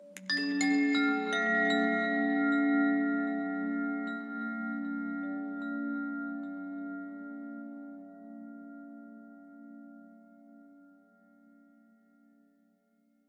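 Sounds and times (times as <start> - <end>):
high abstract ambient chimes: 0.0 - 8.4.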